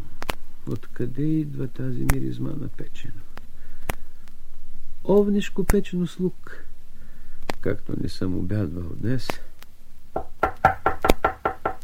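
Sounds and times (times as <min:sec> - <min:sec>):
speech: 0:00.7 - 0:03.3, 0:05.0 - 0:06.7, 0:07.6 - 0:09.5
knocking on a door: 0:10.2 - 0:11.8.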